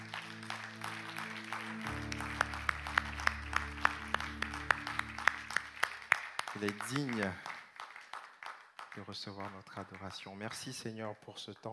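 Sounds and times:
audience applause: 0.0 - 10.8
speech: 6.6 - 7.5, 9.1 - 11.7.

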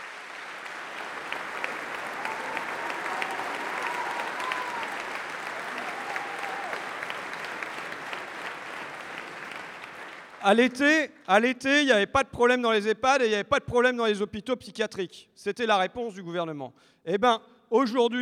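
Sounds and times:
audience applause: 0.0 - 11.0
speech: 10.4 - 18.2.

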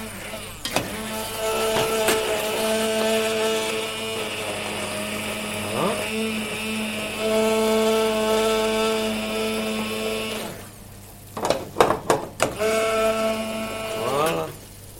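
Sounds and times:
blender puréeing a vegetable velouté soup: 0.0 - 10.8, 12.4 - 14.6.

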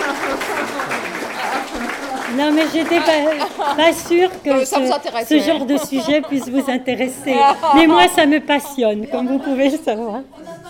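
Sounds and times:
audience clapping: 0.0 - 6.6
laughter: 0.0 - 10.6
murmur of voices: 0.0 - 10.6
speech: 2.4 - 10.6.

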